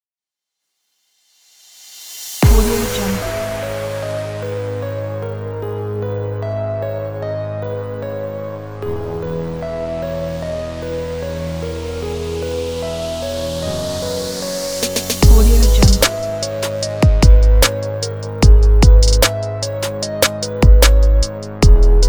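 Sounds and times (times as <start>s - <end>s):
gangsta hip hop music: 2.4s - 6.3s, 11.6s - 22.0s.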